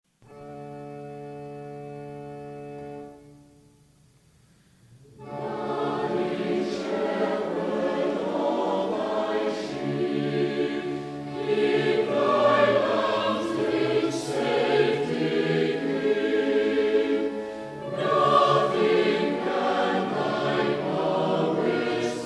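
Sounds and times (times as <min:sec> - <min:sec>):
choir singing hymns: 0:05.2 - 0:22.2.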